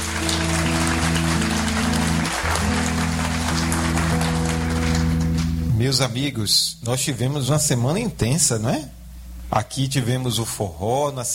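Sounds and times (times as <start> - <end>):
round of applause: 0.0 - 5.6
speech: 5.9 - 11.3.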